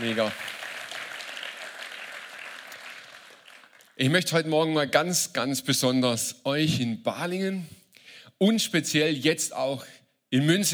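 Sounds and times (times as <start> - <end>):
speech: 0.0 - 0.6, 4.0 - 7.8, 8.4 - 10.7
audience applause: 0.0 - 4.0.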